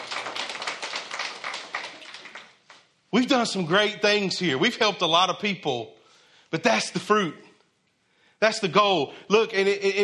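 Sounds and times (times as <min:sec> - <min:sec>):
church congregation clapping: 0:00.0 - 0:03.4
speech: 0:03.1 - 0:07.5, 0:08.4 - 0:10.0.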